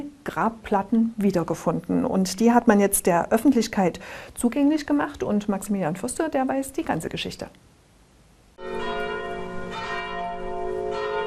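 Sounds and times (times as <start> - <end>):
speech: 0.2 - 7.7
church bells ringing: 8.6 - 11.2.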